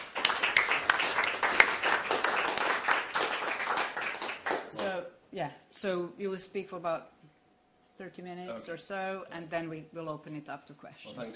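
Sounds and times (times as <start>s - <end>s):
audience applause welcoming a professor giving a talk: 0.0s - 4.9s
speech: 5.4s - 7.2s, 8.0s - 11.3s.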